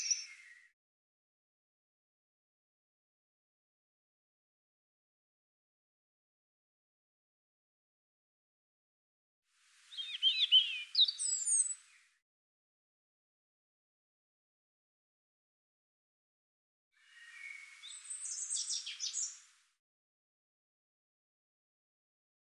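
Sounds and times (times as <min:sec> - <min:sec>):
European robin singing: 0:00.0 - 0:00.7, 0:09.9 - 0:12.1, 0:17.0 - 0:19.4.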